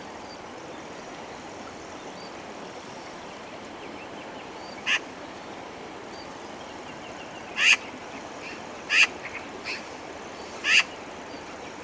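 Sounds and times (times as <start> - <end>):
Eurasian magpie harsh rasping chak calls: 7.6 - 7.8, 8.4 - 9.8, 10.6 - 10.9.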